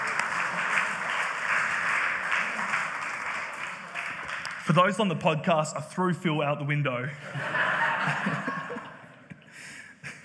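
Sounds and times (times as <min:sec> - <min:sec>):
audience applause: 0:00.0 - 0:05.4
speech: 0:04.7 - 0:08.9
laughter: 0:07.1 - 0:10.2.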